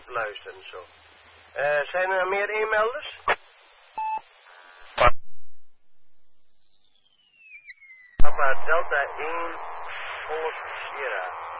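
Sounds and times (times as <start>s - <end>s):
speech: 0.2s - 3.3s, 8.4s - 11.4s
electronic beep tone from a radio transmitter switched on: 4.0s - 4.3s, 6.4s - 8.7s.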